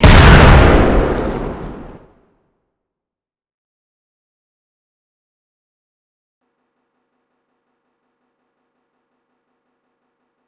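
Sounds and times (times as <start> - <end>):
halogun explosion: 0.0 - 2.3.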